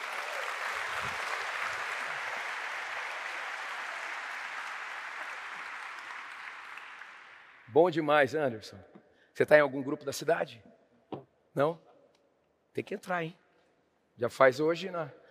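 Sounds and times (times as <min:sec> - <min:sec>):
audience applause: 0:00.0 - 0:07.7
speech: 0:07.7 - 0:10.7, 0:11.6 - 0:11.9, 0:12.8 - 0:13.4, 0:14.2 - 0:15.2.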